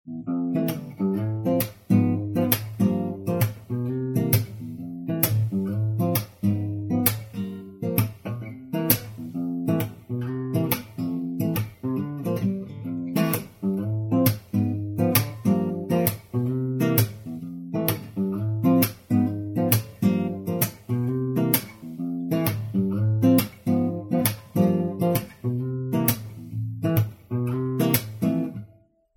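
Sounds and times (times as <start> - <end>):
jam session: 0.3 - 28.6.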